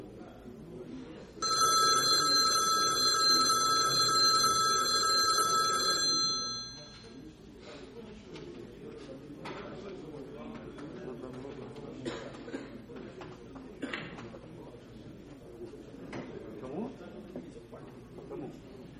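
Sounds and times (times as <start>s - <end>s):
low murmur: 0.0s - 18.9s
telephone bell ringing: 1.4s - 7.2s.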